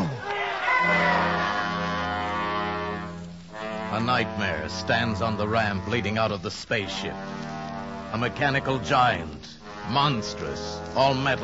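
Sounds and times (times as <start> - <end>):
crowd roaring and shouting in alarm: 0.0 - 2.6
speech: 4.0 - 7.5, 8.1 - 11.4.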